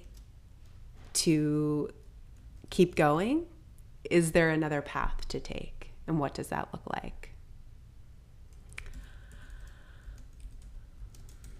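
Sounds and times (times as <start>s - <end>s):
speech: 1.2s - 2.0s, 2.7s - 7.3s
computer keyboard typing while writing out notes: 8.5s - 11.5s.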